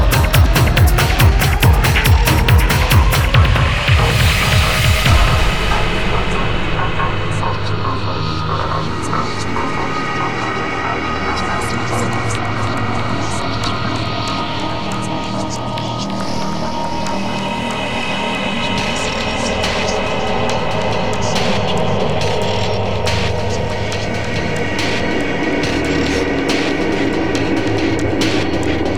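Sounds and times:
tech trance music: 0.0 - 28.9.

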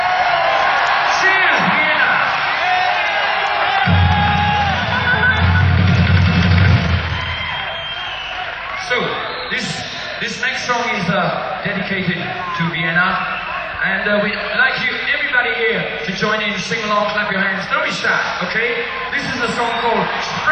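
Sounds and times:
audience cheering and whooping: 0.0 - 15.0, 17.2 - 20.4
heavy low rumble: 3.9 - 7.8
speech: 11.6 - 20.4.

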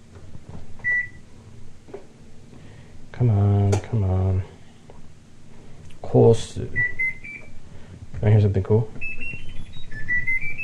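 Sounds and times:
faint knocks and shuffles: 0.0 - 6.2, 7.4 - 9.6
low steady hum: 0.0 - 10.6
washing machine high-pitched electronic beep: 0.8 - 1.2, 6.7 - 7.6, 9.0 - 10.6
speech: 3.2 - 4.5, 6.2 - 7.0, 8.2 - 9.1.

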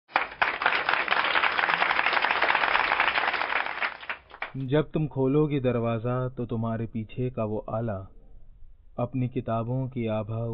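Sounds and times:
loud applause: 0.1 - 4.6
speech: 4.5 - 8.2, 9.0 - 10.5.

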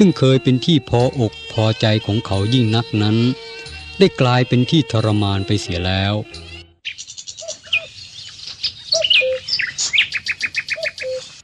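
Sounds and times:
speech: 0.0 - 6.5
small birds chirping and calling on branches: 6.8 - 11.4.

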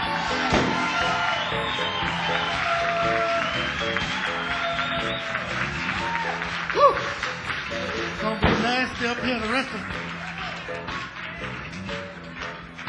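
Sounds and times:
audience applause: 0.0 - 12.8
speech: 9.1 - 10.0.

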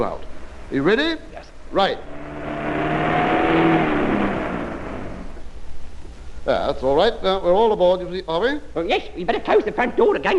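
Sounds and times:
speech: 0.0 - 2.2, 6.5 - 10.3
van engine revving as it drives: 1.8 - 5.5.

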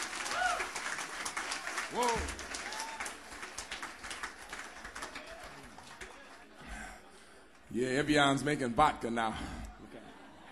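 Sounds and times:
audience applause: 0.0 - 6.6
speech: 1.9 - 2.4, 7.7 - 9.6.

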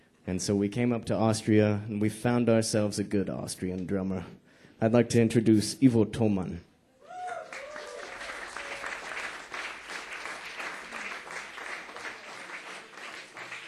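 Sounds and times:
speech: 0.2 - 6.7
audience applause: 7.2 - 13.6.

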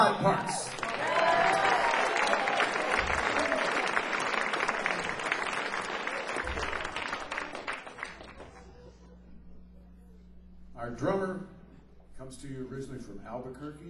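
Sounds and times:
speech: 0.0 - 0.8, 12.3 - 13.8
audience applause: 0.4 - 8.8.

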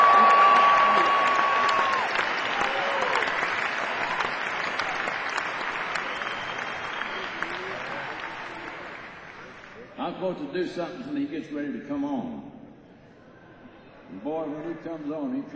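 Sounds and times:
audience applause: 0.0 - 10.0
speech: 10.3 - 12.6, 14.1 - 15.5.

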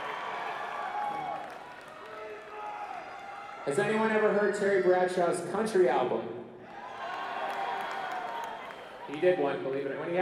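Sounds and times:
audience applause: 0.0 - 3.6, 6.8 - 9.4
audience cheering: 0.0 - 4.3, 6.6 - 9.4
speech: 3.6 - 6.4, 9.1 - 10.1.

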